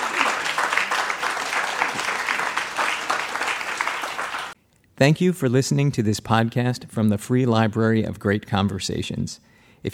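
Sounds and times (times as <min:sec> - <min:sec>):
audience applause: 0:00.0 - 0:04.6
speech: 0:05.0 - 0:09.9.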